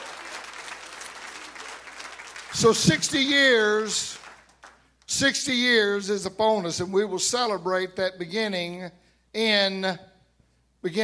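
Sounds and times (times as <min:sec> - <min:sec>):
audience clapping hands: 0:00.0 - 0:05.0
speech: 0:02.5 - 0:04.2, 0:05.2 - 0:10.1, 0:10.8 - 0:11.0.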